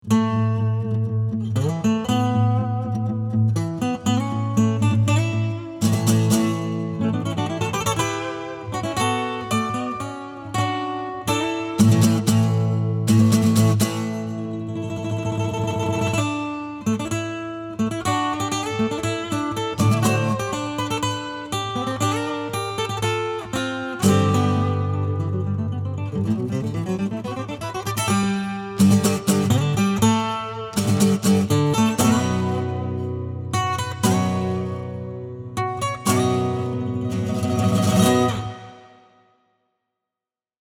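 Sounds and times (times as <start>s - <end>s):
acoustic music: 0.0s - 39.3s.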